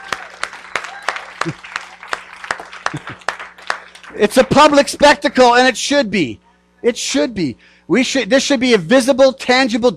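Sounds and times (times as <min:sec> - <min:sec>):
audience clapping: 0:00.0 - 0:04.8
speech: 0:01.4 - 0:01.8, 0:02.9 - 0:03.3, 0:04.1 - 0:09.9.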